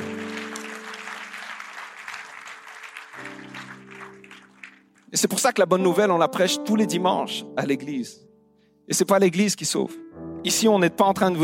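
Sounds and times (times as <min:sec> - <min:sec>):
audience applause: 0:00.0 - 0:05.1
speech: 0:05.1 - 0:08.3, 0:08.9 - 0:11.4.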